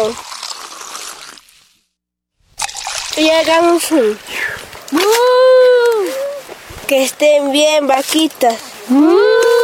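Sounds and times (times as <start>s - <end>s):
speech: 0.0s - 0.3s, 3.2s - 5.5s, 6.9s - 9.5s
soda being poured out: 0.0s - 1.9s, 2.5s - 3.6s.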